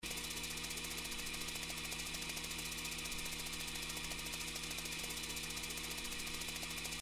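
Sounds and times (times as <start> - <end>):
reel spinning: 0.0 - 7.0.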